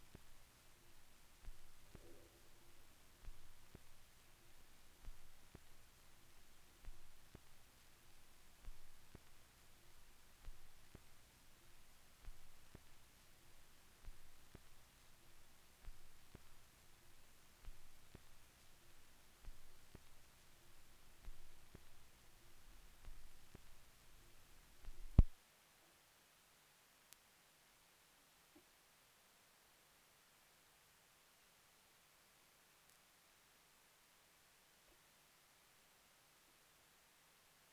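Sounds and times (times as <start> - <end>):
vinyl record noise: 0.0 - 25.4.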